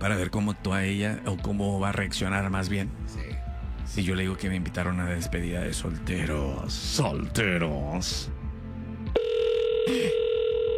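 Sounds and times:
speech: 0.0 - 3.3, 3.9 - 8.4
phone line ringing tone: 9.1 - 10.7.

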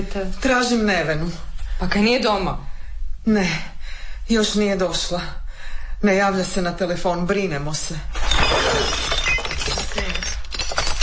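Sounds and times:
speech: 0.0 - 3.7, 4.3 - 5.4, 6.0 - 9.0
drinking glasses shattering: 8.1 - 11.0.

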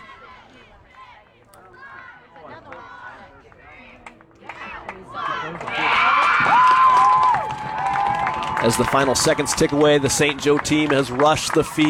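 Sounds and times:
stadium crowd cheering: 0.0 - 11.8
stadium crowd applauding: 4.0 - 11.8
speech: 8.6 - 11.8.

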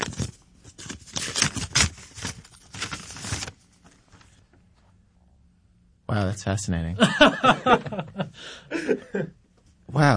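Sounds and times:
envelope being opened: 0.0 - 3.6
speech: 6.1 - 10.1
laughter: 7.0 - 9.4.

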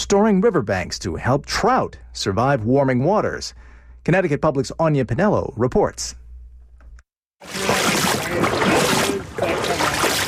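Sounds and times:
speech: 0.1 - 6.2, 7.4 - 7.7
wading through the Norwalk River: 7.4 - 10.2.

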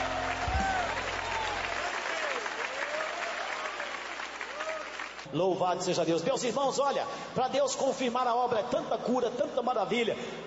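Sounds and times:
congregation clapping hands in praise during a church service: 0.0 - 5.4
speech: 5.3 - 10.4.

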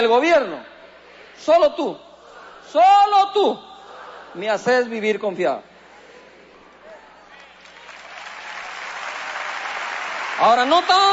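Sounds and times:
speech: 0.0 - 0.7, 1.4 - 2.0, 2.7 - 3.7, 4.3 - 5.7, 10.4 - 11.1
audience applause: 7.4 - 11.1.

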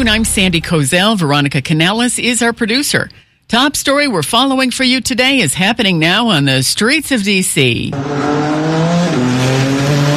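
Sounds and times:
speech: 0.1 - 9.8
race car engines at the Freedom 250 Grand Prix street circuit in Washington DC: 7.9 - 10.1.

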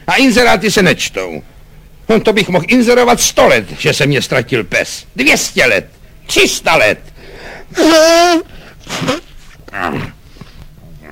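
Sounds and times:
speech: 0.2 - 7.1, 7.7 - 10.2
loud nose blowing: 7.8 - 10.4.

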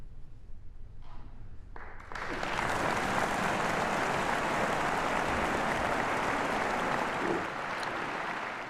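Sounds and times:
audience applause after a concert piece: 2.0 - 8.6.

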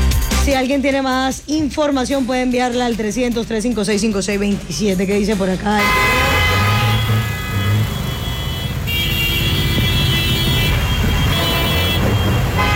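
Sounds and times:
congested road traffic rumbling: 0.0 - 12.7
speech: 0.5 - 6.5
long sustained car horns: 5.7 - 12.7.

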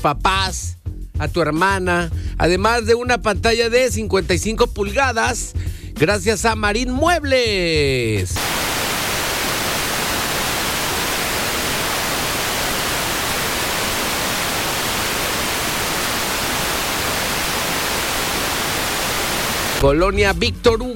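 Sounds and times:
speech: 0.0 - 8.6, 19.8 - 20.9
heavy rain: 8.4 - 19.8.

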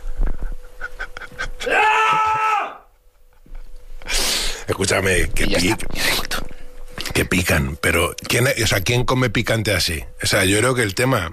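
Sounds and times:
man letting out a frustrated scream: 1.6 - 2.9
speech: 4.8 - 6.2, 7.2 - 11.3.

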